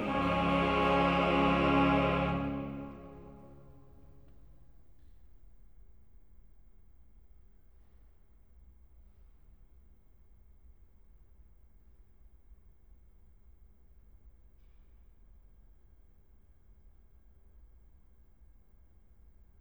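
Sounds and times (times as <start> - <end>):
chorale: 0.0 - 3.9.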